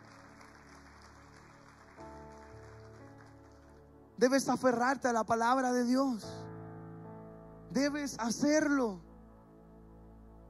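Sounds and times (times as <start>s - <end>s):
audience applauding: 0.0s - 3.9s
speech: 4.2s - 6.4s, 7.8s - 9.1s.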